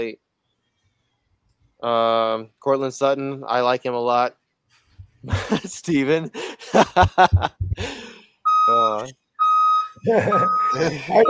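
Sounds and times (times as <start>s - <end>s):
speech: 0.0s - 0.2s, 1.8s - 4.4s, 5.2s - 8.0s, 8.7s - 9.2s, 10.0s - 11.2s
laughter: 5.2s - 8.1s, 10.0s - 11.2s
dump truck warning beeper beeping while unloading: 8.5s - 11.2s.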